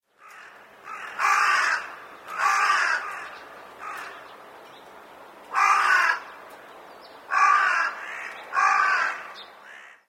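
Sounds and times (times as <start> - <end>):
large-billed crow cawing: 0.2 - 4.3, 5.5 - 6.5, 7.3 - 10.0.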